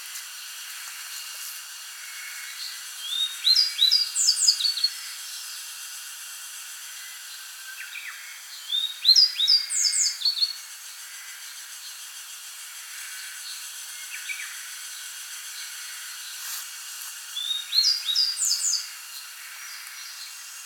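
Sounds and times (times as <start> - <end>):
constant background hiss: 0.0 - 20.6
grey bunting singing: 2.5 - 5.5, 7.0 - 10.6, 17.4 - 20.4.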